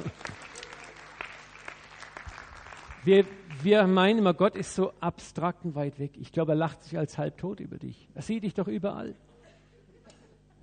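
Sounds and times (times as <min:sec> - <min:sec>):
audience applause: 0:00.0 - 0:03.8
speech: 0:03.0 - 0:09.3.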